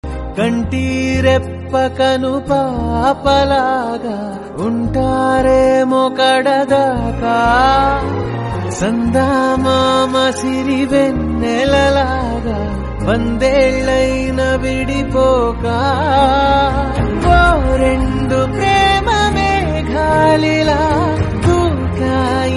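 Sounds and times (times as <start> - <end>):
Telugu song: 0.0 - 22.5.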